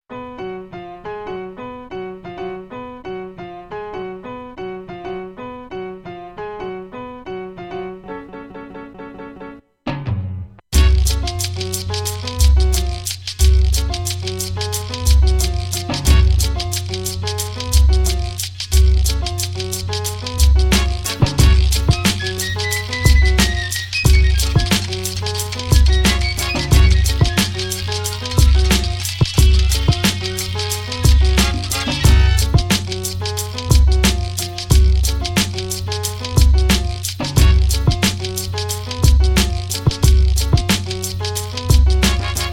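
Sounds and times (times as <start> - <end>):
music beat: 10.7 - 42.5.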